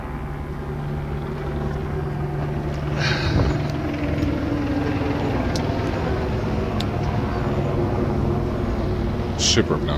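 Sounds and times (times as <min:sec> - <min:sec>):
helicopter circling overhead: 0:00.0 - 0:09.9.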